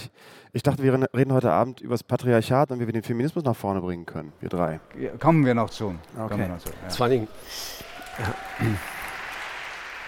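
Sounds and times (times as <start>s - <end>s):
speech: 0.5s - 9.0s
ironic audience clapping: 6.7s - 10.0s.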